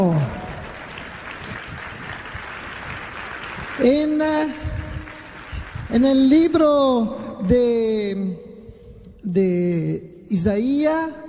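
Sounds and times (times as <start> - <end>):
audience applauding: 0.0 - 6.8
speech: 3.8 - 4.7, 5.9 - 8.4, 9.2 - 11.2.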